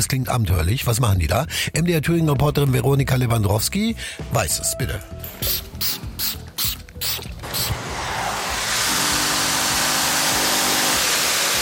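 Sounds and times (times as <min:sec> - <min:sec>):
speech: 0:00.0 - 0:06.0
spraying chairs: 0:05.3 - 0:11.6
steam-vacuum cleaning chairs: 0:05.4 - 0:11.6.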